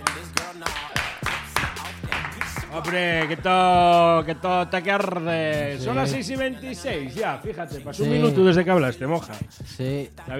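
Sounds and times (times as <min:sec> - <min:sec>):
timid applause, few people clapping: 0:00.0 - 0:04.0
speech: 0:02.8 - 0:10.3.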